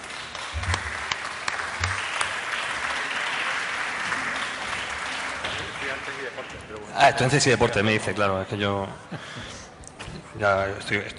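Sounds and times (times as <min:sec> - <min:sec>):
crowd applause: 0:00.0 - 0:07.4
speech: 0:06.0 - 0:09.7, 0:10.3 - 0:11.1.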